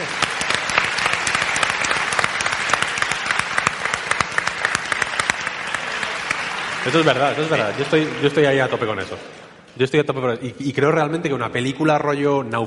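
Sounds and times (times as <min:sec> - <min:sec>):
audience applauding loudly: 0:00.0 - 0:09.6
speech: 0:06.8 - 0:12.6.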